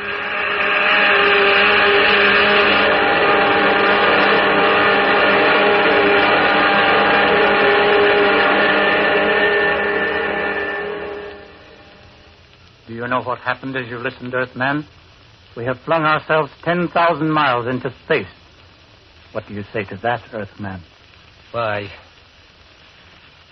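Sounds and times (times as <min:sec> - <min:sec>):
spaceship jet dynamos humming: 0:00.0 - 0:18.4
speech: 0:13.2 - 0:15.0, 0:15.6 - 0:18.4, 0:19.3 - 0:20.9, 0:21.5 - 0:22.0.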